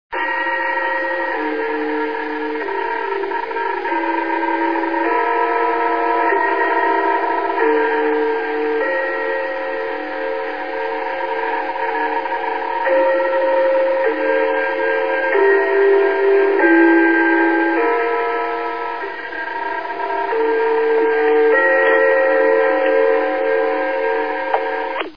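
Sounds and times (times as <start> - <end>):
gongs: 0.1 - 25.1.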